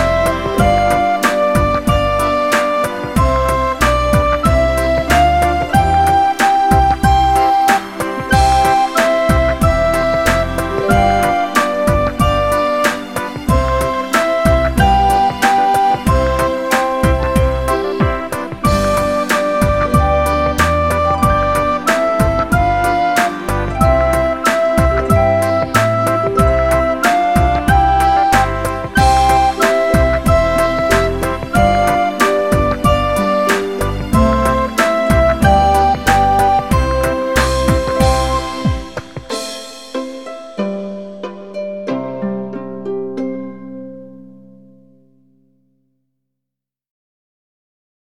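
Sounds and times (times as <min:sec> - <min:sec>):
recorder playing a children's song: 0:00.0 - 0:42.3.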